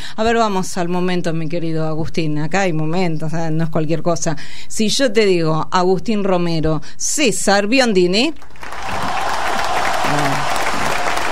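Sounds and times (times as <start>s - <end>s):
speech: 0.1s - 8.8s
audience ovation applause: 8.4s - 11.2s.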